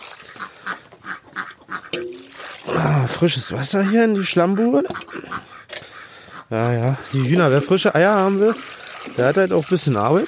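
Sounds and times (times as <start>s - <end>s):
drake quacking loudly in a farmyard: 0.2s - 2.0s, 3.4s - 7.4s
speech: 1.9s - 5.5s, 6.5s - 10.2s.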